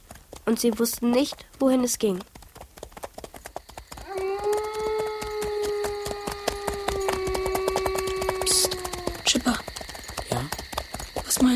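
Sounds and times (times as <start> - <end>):
hooves of several horses walking slowly: 0.0 - 11.5
speech: 0.5 - 2.4
long sustained high wailing tone: 4.0 - 9.4.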